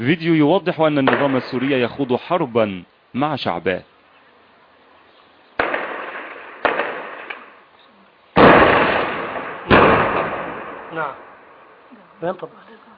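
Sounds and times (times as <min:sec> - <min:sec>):
speech: 0:00.0 - 0:03.9, 0:10.9 - 0:11.3, 0:11.9 - 0:12.9
RPG rocket launcher blasts fired by a Syrian security officer at houses: 0:05.6 - 0:07.6, 0:08.4 - 0:11.7.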